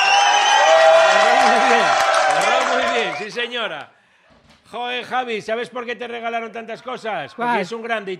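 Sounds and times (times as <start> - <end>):
people shouting and cheering: 0.0 - 3.5
audience applause: 0.0 - 3.6
speech: 3.3 - 8.1.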